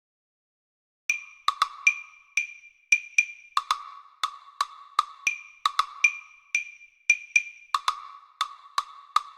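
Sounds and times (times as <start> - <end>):
Latin cowbell: 1.1 - 9.3
Latin wood block: 1.1 - 9.3.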